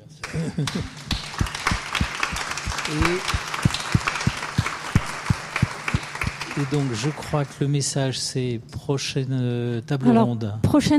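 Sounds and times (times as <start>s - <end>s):
speech: 0.4s - 1.2s, 2.9s - 3.4s, 6.6s - 10.9s
audience applauding speakers: 0.6s - 7.7s.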